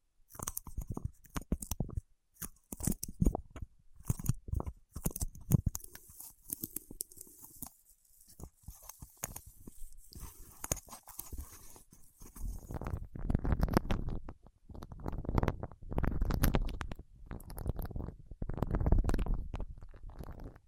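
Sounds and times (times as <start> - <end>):
wax fingertips tapping and peeling: 0.3 - 20.6.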